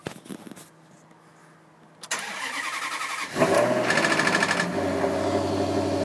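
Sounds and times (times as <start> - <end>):
Maserati car engine cold start: 2.0 - 6.0.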